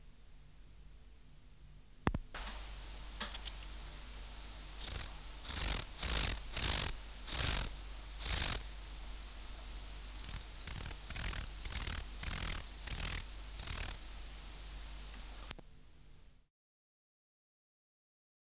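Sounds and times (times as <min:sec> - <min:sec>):
Chorthippus pulloides chirping: 0:02.4 - 0:15.5.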